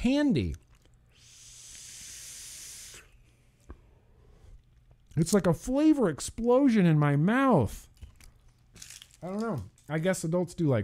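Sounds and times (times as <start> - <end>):
speech: 0.0 - 0.6, 5.2 - 7.9, 9.2 - 10.8
cherry smash vape being puffed: 1.1 - 3.1.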